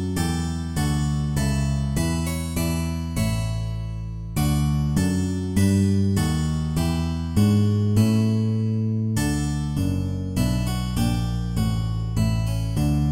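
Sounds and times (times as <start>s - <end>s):
bass guitar: 0.0s - 13.0s
harpsichord: 0.0s - 13.0s.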